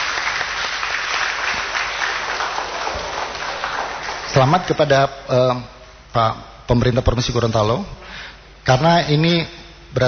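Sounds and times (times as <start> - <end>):
audience applause: 0.0 - 5.0
speech: 4.4 - 10.0.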